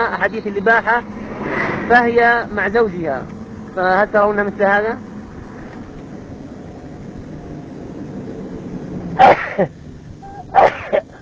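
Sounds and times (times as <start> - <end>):
speech: 0.0 - 5.1, 9.2 - 9.8
person sneezing: 9.2 - 9.7, 10.3 - 11.1.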